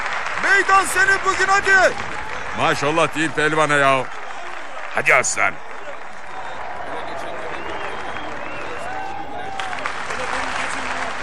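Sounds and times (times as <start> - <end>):
crowd of supporters applauding: 0.0 - 11.2
speech: 0.6 - 4.2, 5.0 - 5.6.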